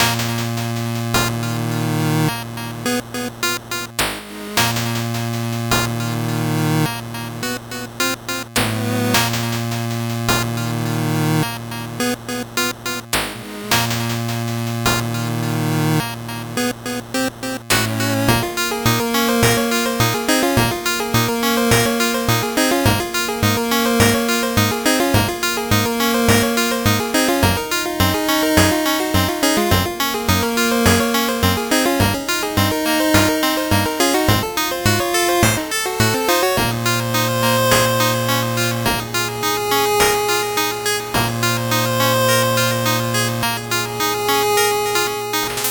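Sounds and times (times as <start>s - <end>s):
8-bit background music: 0.0s - 45.6s.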